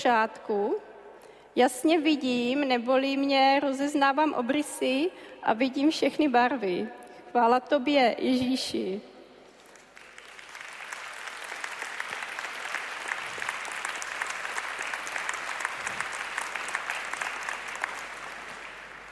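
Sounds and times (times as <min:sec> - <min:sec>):
speech: 0:00.0 - 0:00.9, 0:01.6 - 0:09.1
audience applause: 0:09.7 - 0:19.1.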